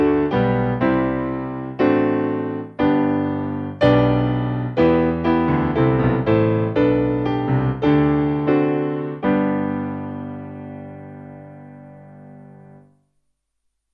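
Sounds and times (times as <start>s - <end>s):
traditional hymn played on piano: 0.0s - 12.9s.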